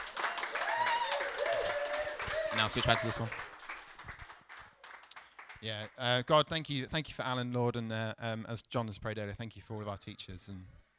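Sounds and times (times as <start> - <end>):
audience round of applause: 0.0 - 5.7
speech: 2.5 - 3.5, 5.6 - 10.8.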